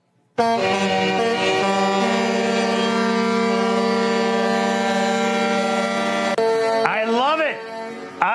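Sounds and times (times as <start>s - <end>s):
speech: 0.4s - 1.0s
truck air horns honking: 0.4s - 8.3s.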